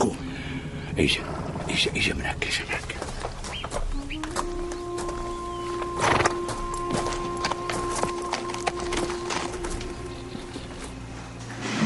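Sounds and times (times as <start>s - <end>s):
horses neighing: 0.0s - 11.7s
speech: 1.0s - 3.0s
horses clip-clopping: 2.4s - 11.1s.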